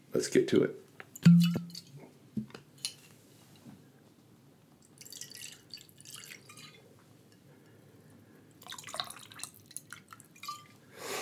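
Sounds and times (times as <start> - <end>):
glass clink: 1.3 - 1.9
drink pouring into a glass: 5.0 - 6.8, 8.6 - 10.7.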